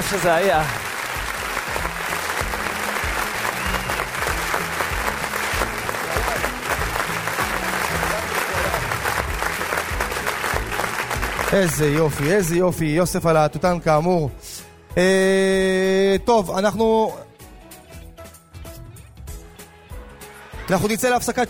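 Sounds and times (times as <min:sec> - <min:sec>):
audience applause: 0:00.0 - 0:12.7
speech: 0:00.1 - 0:00.8, 0:11.5 - 0:17.2, 0:20.7 - 0:21.4.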